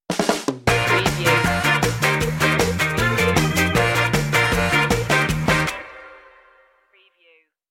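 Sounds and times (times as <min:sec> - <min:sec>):
ska music sting: 0:00.1 - 0:06.2.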